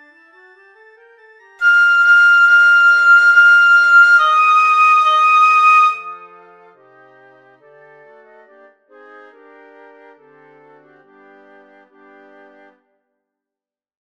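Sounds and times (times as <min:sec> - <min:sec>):
piccolo: 0:01.6 - 0:06.8.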